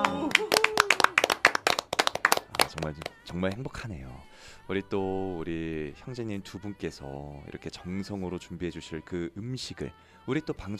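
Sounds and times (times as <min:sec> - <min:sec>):
audience clapping: 0:00.0 - 0:03.7
speech: 0:02.8 - 0:10.7.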